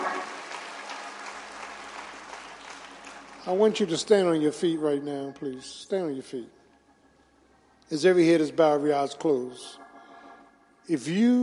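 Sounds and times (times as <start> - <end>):
audience steady sustained applause: 0.0 - 4.4
speech: 3.4 - 6.6, 7.9 - 9.8, 10.9 - 11.4.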